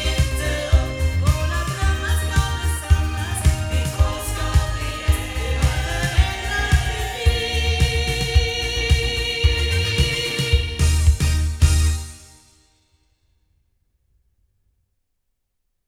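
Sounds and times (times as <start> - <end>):
loudspeakers recorded with a cardioid microphone: 0.0 - 11.9.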